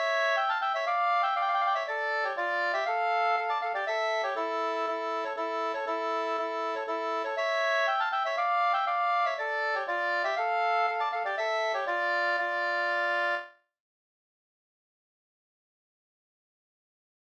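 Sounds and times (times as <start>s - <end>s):
bridal polska dance tune from Alvdalen: 0.0s - 13.5s.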